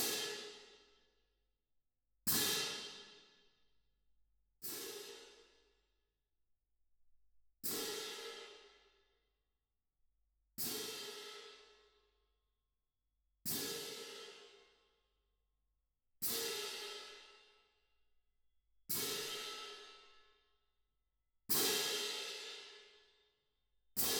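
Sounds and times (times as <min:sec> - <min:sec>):
percussion: 0:00.0 - 0:01.0, 0:02.3 - 0:03.5, 0:04.6 - 0:05.8, 0:07.6 - 0:09.1, 0:10.6 - 0:12.0, 0:13.5 - 0:14.9, 0:18.9 - 0:20.3, 0:21.5 - 0:23.2, 0:24.0 - 0:24.1.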